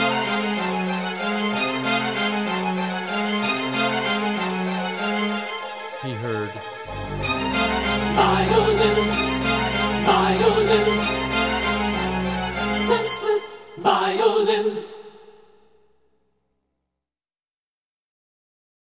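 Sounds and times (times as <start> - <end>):
violins playing: 0.0 - 14.2.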